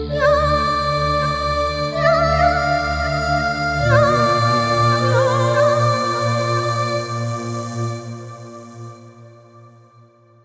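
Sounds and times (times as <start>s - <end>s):
mountain voices: 0.1s - 8.1s.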